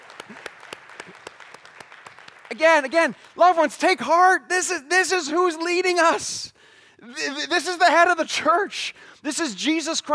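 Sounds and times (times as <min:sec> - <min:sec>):
audience applause: 0:00.0 - 0:03.5
speech: 0:02.5 - 0:10.1.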